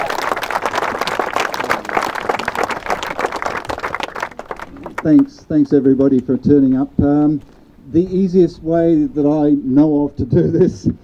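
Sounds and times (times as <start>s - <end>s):
crowd applauding: 0.0s - 5.9s
speech: 5.0s - 11.0s.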